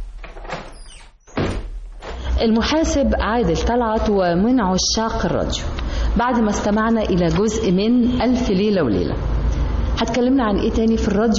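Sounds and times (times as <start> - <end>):
door scraping and sliding as it is shut: 0.0 - 2.2
speech: 2.4 - 9.3, 10.0 - 11.3.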